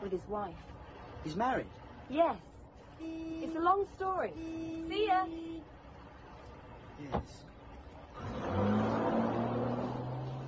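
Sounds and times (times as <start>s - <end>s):
speech: 0.1s - 5.8s, 7.0s - 7.5s
car driving past: 8.1s - 10.4s.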